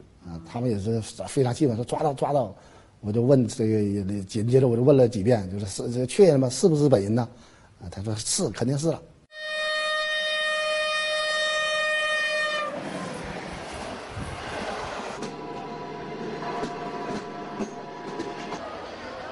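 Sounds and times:
speech: 0.5s - 9.1s
train horn blaring: 9.3s - 13.7s, 14.9s - 18.6s.

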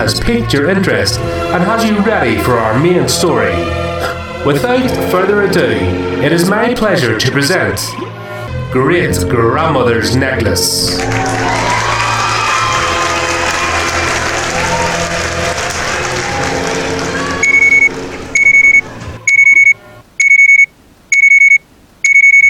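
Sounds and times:
speech: 0.0s - 8.1s, 8.7s - 11.8s
crowd applause: 10.9s - 19.2s
phone ringing with incoming call: 17.4s - 22.4s.

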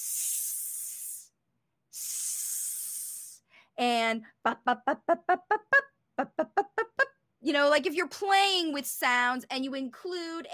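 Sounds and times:
voice imitating a snake's hiss: 0.0s - 3.4s
speech: 3.8s - 6.7s, 7.4s - 10.5s.

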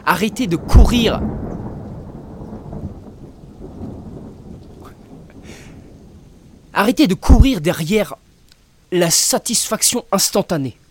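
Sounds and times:
speech: 0.0s - 1.4s, 6.8s - 8.2s, 8.9s - 10.8s
low rumble of thunder: 0.0s - 8.1s
rain hissing: 0.0s - 10.9s.

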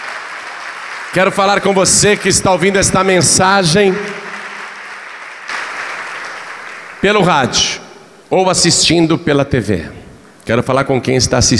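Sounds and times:
audience applause: 0.0s - 8.2s
speech: 1.1s - 4.2s, 7.0s - 11.5s.

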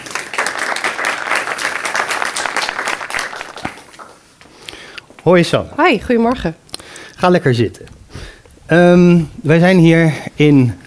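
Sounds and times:
audience applause: 0.0s - 4.2s
speech: 5.2s - 6.6s, 7.2s - 8.0s, 8.7s - 10.8s.

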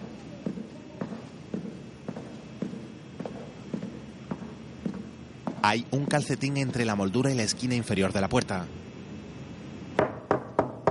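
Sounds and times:
footsteps walking down a corridor: 0.0s - 6.8s
low constant hum: 0.0s - 10.8s
speech: 5.6s - 8.9s.

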